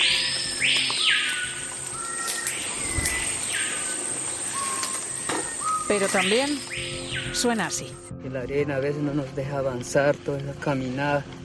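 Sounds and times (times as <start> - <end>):
Amazon rainforest bird calls: 0.0 - 8.1
steady high insect-like hum: 0.0 - 8.1
speech: 5.9 - 11.4.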